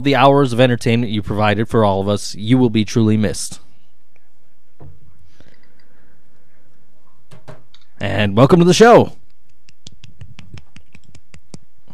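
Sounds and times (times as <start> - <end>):
speech: 0.0 - 3.6, 8.0 - 9.2
scattered applause from one or two people: 9.4 - 11.6.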